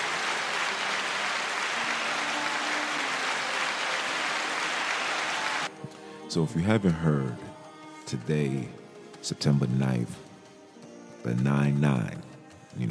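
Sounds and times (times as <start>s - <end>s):
audience applause: 0.0s - 5.7s
speech: 6.3s - 7.5s, 8.1s - 10.3s, 11.2s - 12.8s.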